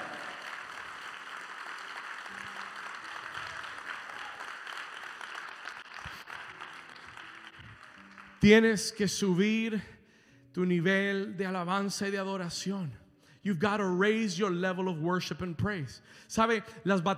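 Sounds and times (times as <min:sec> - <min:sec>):
audience applauding loudly: 0:00.0 - 0:09.0
speech: 0:08.4 - 0:09.9, 0:10.6 - 0:17.1.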